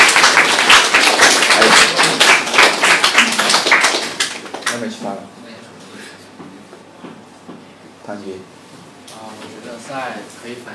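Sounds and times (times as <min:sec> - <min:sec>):
applause: 0:00.0 - 0:05.0.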